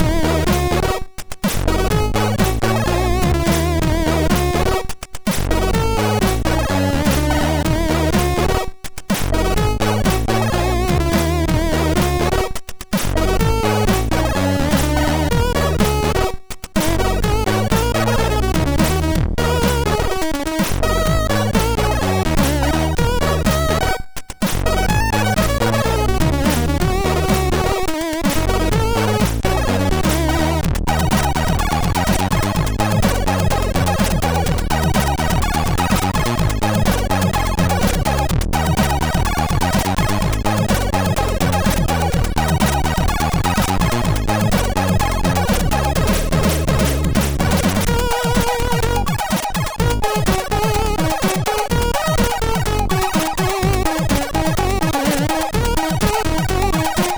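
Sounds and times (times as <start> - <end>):
funky tune on MOS6581R2 sound chip: 0.0 - 57.1.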